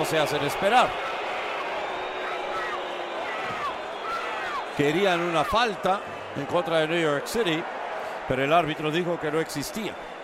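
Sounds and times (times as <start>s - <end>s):
speech: 0.0s - 1.2s, 4.8s - 10.1s
stadium crowd booing: 0.0s - 10.2s.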